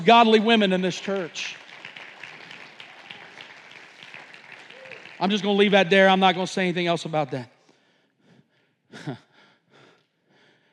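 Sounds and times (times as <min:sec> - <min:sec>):
speech: 0:00.0 - 0:01.6, 0:05.2 - 0:07.5, 0:08.9 - 0:09.2
audience clapping: 0:00.0 - 0:07.6.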